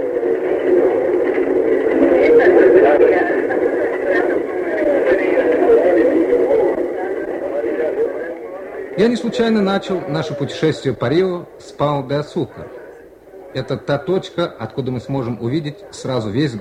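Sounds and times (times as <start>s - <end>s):
passengers boarding a cable car: 0.0s - 16.6s
speech: 9.0s - 12.8s, 13.5s - 16.6s.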